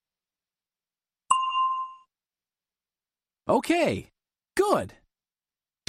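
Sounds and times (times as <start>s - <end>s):
bell ding cueing the listener to answer: 1.3s - 2.1s
speech: 3.5s - 5.0s.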